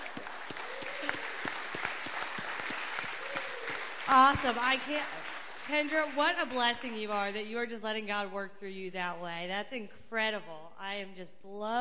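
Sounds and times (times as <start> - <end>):
audience applause: 0.0 - 7.1
speech: 4.1 - 11.7.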